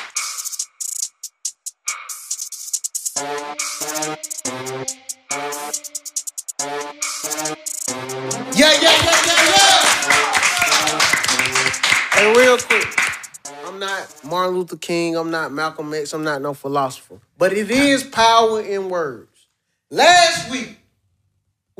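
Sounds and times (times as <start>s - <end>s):
speech: 3.2s - 6.0s, 14.4s - 19.3s, 19.9s - 20.8s
audience applause: 8.6s - 13.2s.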